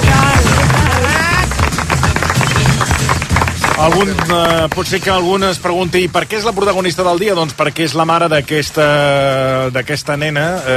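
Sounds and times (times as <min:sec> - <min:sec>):
loud applause: 0:00.0 - 0:05.2
speech: 0:03.8 - 0:10.7.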